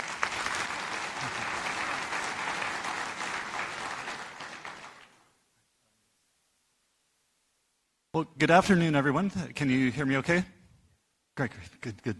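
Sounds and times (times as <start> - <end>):
conference audience applause welcoming speakers: 0.0 - 5.2
speech: 8.2 - 10.5, 11.4 - 12.1.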